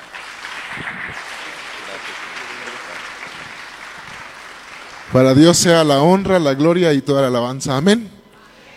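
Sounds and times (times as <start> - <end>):
audience applause: 0.0 - 6.8
speech: 5.1 - 8.2.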